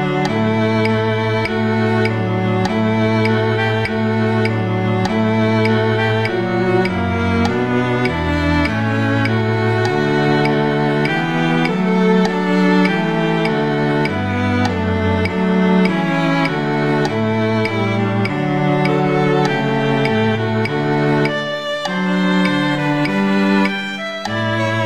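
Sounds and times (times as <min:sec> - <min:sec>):
second violin playing in a quartet: 0:00.0 - 0:24.8.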